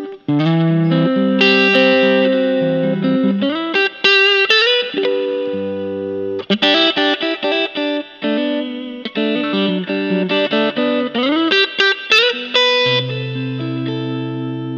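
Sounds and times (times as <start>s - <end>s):
black Fender teleca electric guitar: 0.0s - 14.7s.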